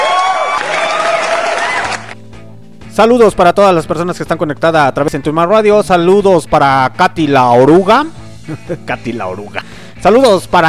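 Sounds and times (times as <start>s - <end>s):
applause: 0.0s - 2.2s
crowd cheering: 0.0s - 2.2s
speech: 3.0s - 10.6s
laughter: 8.5s - 8.9s.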